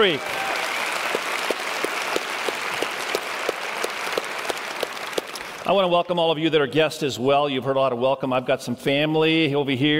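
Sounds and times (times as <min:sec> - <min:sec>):
speech: 0:00.0 - 0:00.4, 0:05.7 - 0:09.9
audience applauding: 0:00.0 - 0:05.8.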